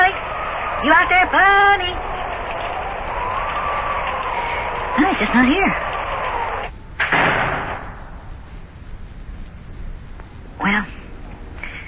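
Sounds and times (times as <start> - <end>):
thunder crash rolling into a low rumble: 0.0 - 8.6
steady rain hissing: 0.0 - 11.8
speech: 0.8 - 2.1, 5.0 - 5.9.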